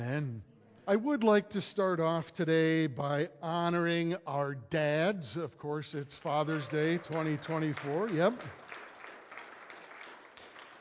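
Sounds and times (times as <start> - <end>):
speech: 0.2 - 8.6
church congregation applause honoring fathers on Father's Day: 6.1 - 10.7.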